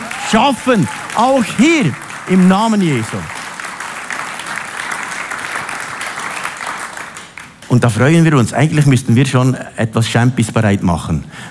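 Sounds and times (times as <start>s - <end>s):
audience applause: 0.0s - 7.8s
speech: 0.3s - 3.4s, 7.7s - 11.4s.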